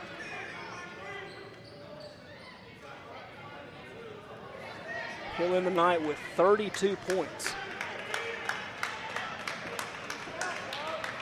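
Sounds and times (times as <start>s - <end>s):
speech: 5.4s - 7.7s
crowd clapping: 5.4s - 11.2s.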